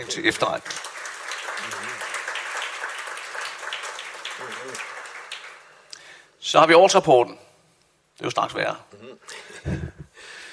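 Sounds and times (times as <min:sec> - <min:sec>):
speech: 0:00.0 - 0:00.8, 0:06.4 - 0:07.4, 0:08.2 - 0:09.8
assembly crowd applause: 0:00.0 - 0:05.9.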